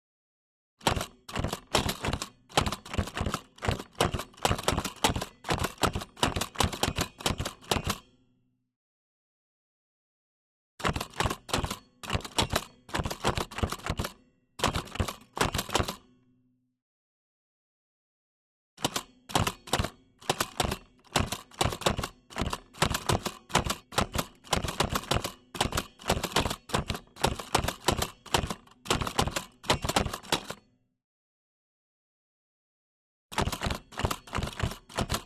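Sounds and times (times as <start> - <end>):
Olivetti Linea 98 typewriter typing slowly without cover: 0.8 - 8.0, 10.8 - 16.0, 18.8 - 30.6, 33.3 - 35.2.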